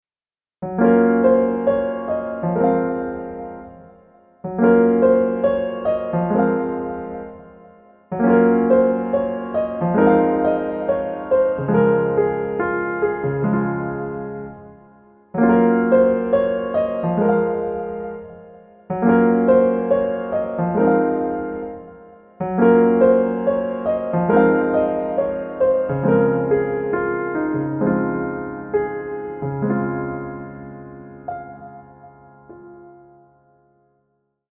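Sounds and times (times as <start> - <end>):
piano: 0.6 - 34.5.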